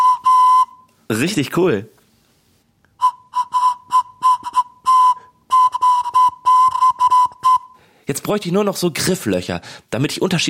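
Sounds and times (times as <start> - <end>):
homemade carrot flute playing a single note: 0.0 - 0.9, 3.0 - 7.8
speech: 1.1 - 2.0, 8.1 - 10.4.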